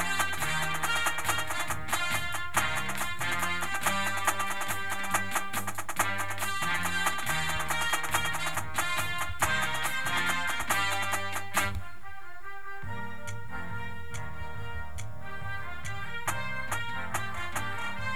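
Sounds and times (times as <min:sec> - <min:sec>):
drumline snare drum: 0:00.0 - 0:11.9, 0:15.8 - 0:18.1
music: 0:00.0 - 0:18.1.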